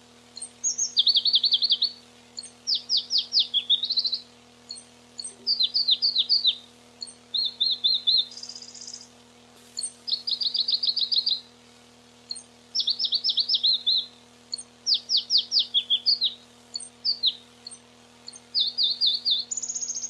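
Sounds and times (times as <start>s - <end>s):
faint constant electrical hum: 0.0s - 20.0s
Pallas's leaf warbler singing varied trills: 0.3s - 9.1s, 9.8s - 11.5s, 12.3s - 20.0s.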